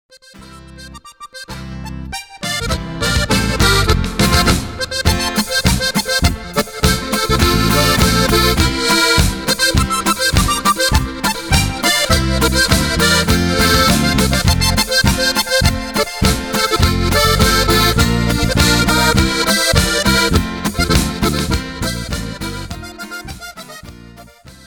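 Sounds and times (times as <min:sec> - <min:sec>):
Bavarian Boarischer folk dance music: 0:01.6 - 0:24.6.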